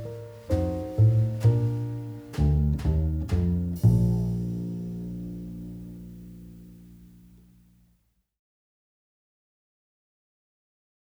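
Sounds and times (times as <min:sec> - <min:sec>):
minuet in B flat major: 0:00.0 - 0:07.7.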